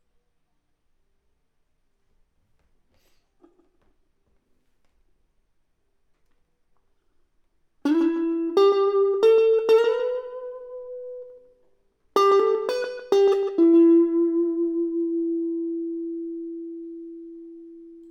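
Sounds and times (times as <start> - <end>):
electric guitar: 7.9 - 18.0.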